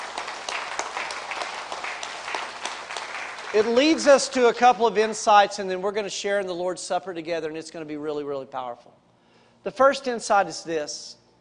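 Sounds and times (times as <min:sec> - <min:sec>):
audience applause: 0:00.0 - 0:04.3
speech: 0:03.5 - 0:09.0, 0:09.6 - 0:11.2.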